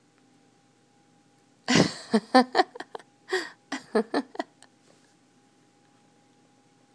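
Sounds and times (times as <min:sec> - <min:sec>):
person laughing mockingly: 0:01.7 - 0:04.6.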